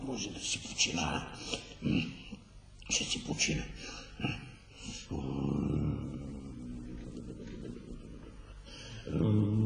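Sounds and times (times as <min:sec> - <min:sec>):
speech: 0:00.2 - 0:02.2, 0:02.9 - 0:04.5
person snoring: 0:04.8 - 0:09.6.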